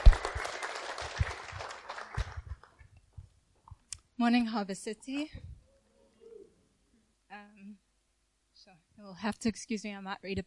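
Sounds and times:
group applauding: 0.0 - 2.8
speech: 4.2 - 5.5, 9.1 - 10.4.

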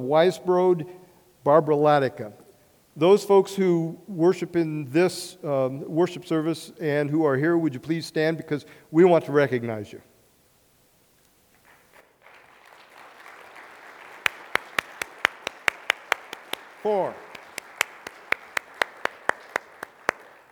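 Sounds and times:
speech: 0.0 - 2.4, 3.0 - 10.1, 16.9 - 17.2
audience applause: 11.6 - 20.5.

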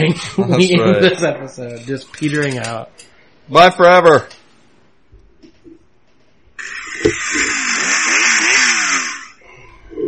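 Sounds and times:
speech: 0.0 - 4.4, 6.6 - 7.6
chainsaw running: 6.6 - 9.4.

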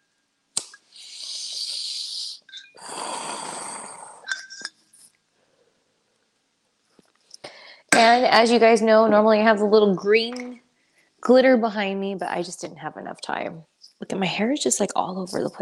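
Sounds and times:
inhaling a toke of smoke: 0.9 - 4.4
speech: 8.0 - 10.4, 11.2 - 15.5.

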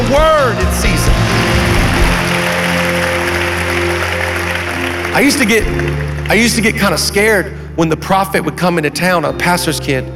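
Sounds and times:
audience clapping: 0.2 - 7.4
speech: 5.2 - 10.1.

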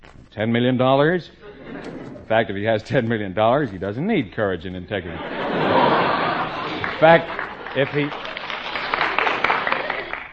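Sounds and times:
speech: 0.4 - 5.8, 7.0 - 8.3
laughter: 1.4 - 3.0, 5.0 - 10.3
audience applause: 5.3 - 10.3.

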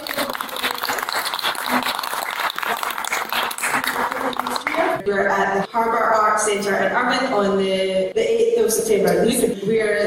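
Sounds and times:
audience applause: 0.0 - 5.0
speech: 5.0 - 10.0.

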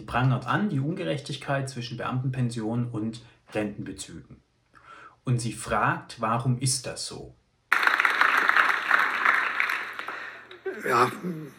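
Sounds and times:
speech: 0.0 - 4.4, 5.2 - 7.4, 10.8 - 11.5
audience applause: 7.7 - 11.2.

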